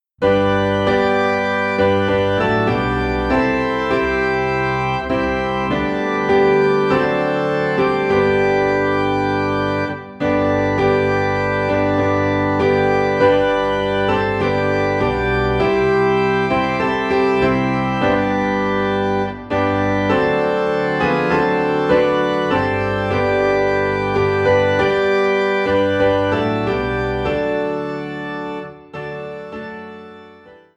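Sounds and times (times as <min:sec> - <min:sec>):
piano: 0:00.0 - 0:30.7
organ: 0:00.2 - 0:30.7.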